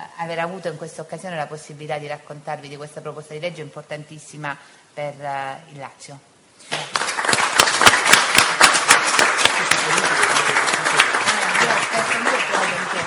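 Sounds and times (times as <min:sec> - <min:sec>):
speech: 0:00.2 - 0:07.0
audience applause: 0:06.8 - 0:13.0.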